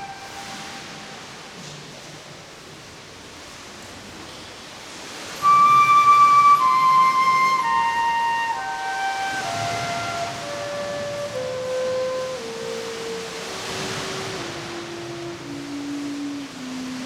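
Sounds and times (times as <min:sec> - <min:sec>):
flute playing in a cave: 0:00.0 - 0:01.6, 0:05.4 - 0:17.0.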